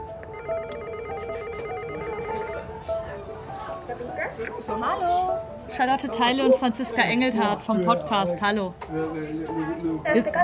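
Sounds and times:
electronic doorbell ringing: 0:00.3 - 0:02.8
speech: 0:04.3 - 0:10.4.

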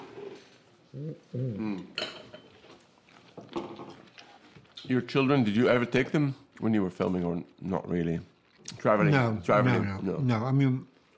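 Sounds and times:
speech: 0:01.0 - 0:02.0, 0:04.9 - 0:10.9
plates and cutlery clattering while serving salad: 0:01.9 - 0:04.1.

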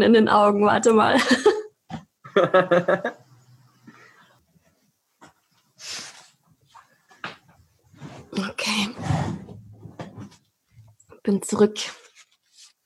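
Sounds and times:
speech: 0:00.0 - 0:01.6, 0:02.4 - 0:03.2, 0:11.3 - 0:12.0
person blowing nose: 0:05.8 - 0:06.4.

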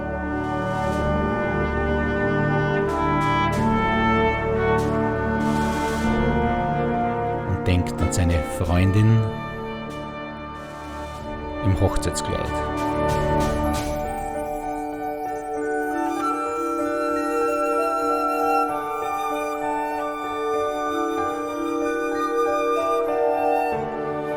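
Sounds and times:
piano: 0:00.0 - 0:24.3
speech: 0:08.1 - 0:09.5, 0:11.8 - 0:12.8
glockenspiel: 0:12.5 - 0:24.3.

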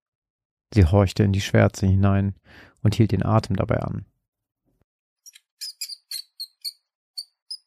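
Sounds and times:
speech: 0:00.7 - 0:04.1
thin high-pitched squeaks or peeps: 0:05.2 - 0:07.6.

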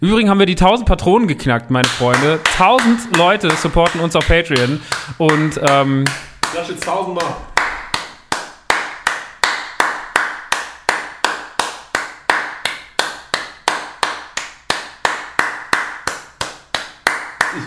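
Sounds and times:
speech: 0:00.0 - 0:07.5
hands clapping: 0:01.8 - 0:17.6.

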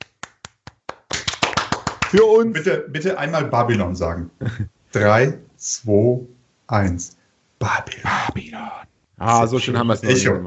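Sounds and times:
applause: 0:00.0 - 0:02.3
speech: 0:02.1 - 0:10.4
laughter: 0:03.2 - 0:04.7, 0:10.0 - 0:10.4.

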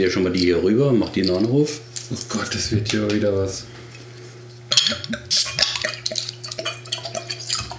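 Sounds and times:
speech: 0:00.0 - 0:03.8, 0:04.9 - 0:05.6
pouring bottles into glasses: 0:04.7 - 0:07.7.

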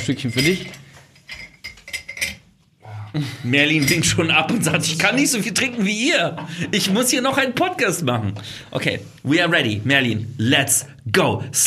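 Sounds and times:
speech: 0:00.0 - 0:00.8, 0:03.1 - 0:11.6
glasses clinking as they are refilled with Prosecco: 0:00.0 - 0:02.5, 0:03.6 - 0:06.8.

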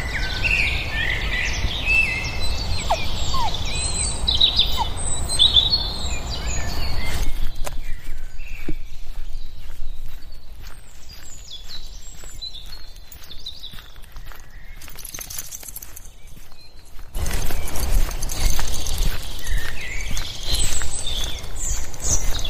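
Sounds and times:
many birds singing in the woods: 0:00.0 - 0:22.4
footsteps: 0:06.5 - 0:22.4.

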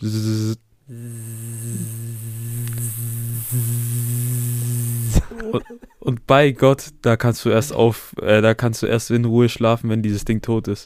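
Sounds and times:
speech: 0:00.0 - 0:01.2, 0:05.5 - 0:10.8
voice imitating a mosquito buzzing by the ear: 0:00.0 - 0:05.7
laughter: 0:05.2 - 0:06.0.

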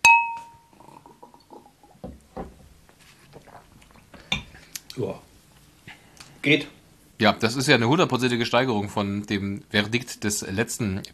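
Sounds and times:
two glasses clinking in a toast: 0:00.0 - 0:00.8
speech: 0:05.0 - 0:05.3, 0:06.4 - 0:11.1.

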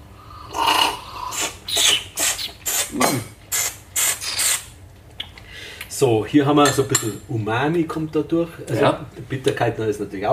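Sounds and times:
person slurping green tea: 0:00.3 - 0:04.7
speech: 0:06.0 - 0:10.3.

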